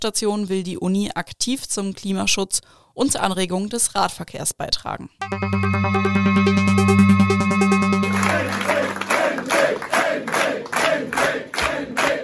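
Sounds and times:
speech: 0:00.0 - 0:11.5
sustained tonal hum: 0:05.2 - 0:09.5
crowd cheering and clapping at an election party: 0:05.2 - 0:12.2.

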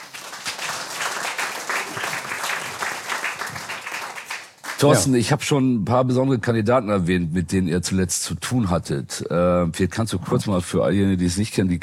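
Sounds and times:
crowd applauding: 0:00.0 - 0:05.1
speech: 0:04.8 - 0:11.8.

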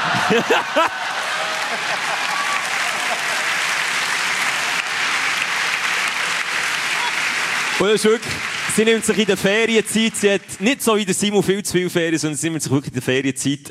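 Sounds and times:
person cheering: 0:00.0 - 0:03.7, 0:06.8 - 0:10.6
laughter: 0:00.0 - 0:10.7
audience applause: 0:00.0 - 0:11.3
speech: 0:00.3 - 0:01.1, 0:01.7 - 0:02.3, 0:07.8 - 0:13.6.

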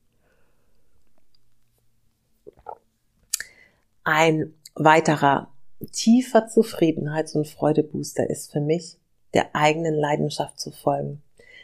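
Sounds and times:
sipping and swallowing water: 0:02.4 - 0:03.6
speech: 0:04.0 - 0:11.2.

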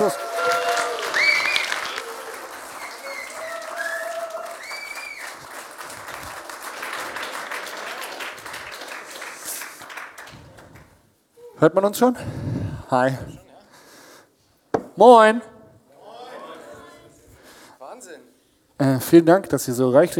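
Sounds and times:
live audience applauding: 0:00.0 - 0:10.9
speech: 0:11.6 - 0:13.4, 0:15.0 - 0:15.5, 0:18.8 - 0:20.1.

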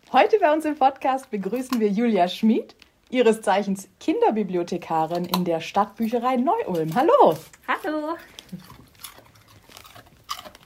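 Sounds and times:
speech: 0:00.1 - 0:08.7
dog crunching on a carrot: 0:01.2 - 0:02.1, 0:04.8 - 0:10.6.

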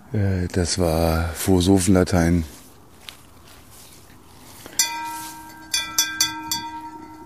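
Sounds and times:
speech: 0:00.1 - 0:02.6
bell ringing: 0:04.7 - 0:07.2.

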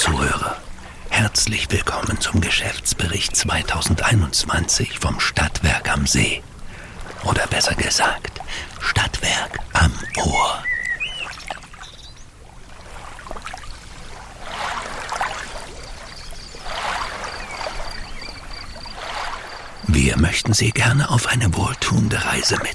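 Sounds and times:
person speaking calmly: 0:00.0 - 0:10.8, 0:19.8 - 0:22.7
water trickling: 0:00.0 - 0:22.7
speech: 0:01.3 - 0:06.5, 0:07.2 - 0:10.7, 0:20.2 - 0:22.7
paddle strokes splashing in water beside a boat: 0:06.7 - 0:07.3, 0:10.0 - 0:19.8.

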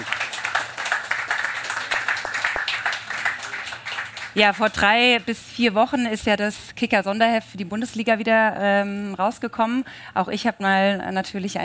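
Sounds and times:
audience applause: 0:00.0 - 0:04.4
speech: 0:04.4 - 0:11.6.

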